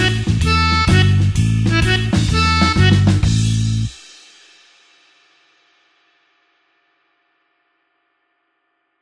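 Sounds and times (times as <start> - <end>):
blues harp shuffle in A: 0.0 - 3.9.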